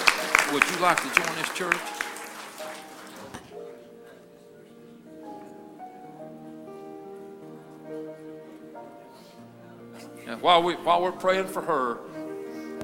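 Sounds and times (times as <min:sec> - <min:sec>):
church audience applause: 0:00.0 - 0:03.5
speech: 0:00.5 - 0:02.0, 0:10.4 - 0:12.2.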